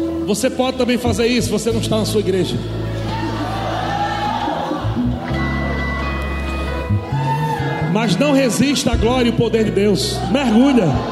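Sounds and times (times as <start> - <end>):
loud steady music with deep sustained tones: 0.0 - 11.1
speech: 0.3 - 3.0, 8.0 - 11.1
church audience shouting excitedly: 2.9 - 5.2, 6.9 - 8.7, 10.1 - 11.1.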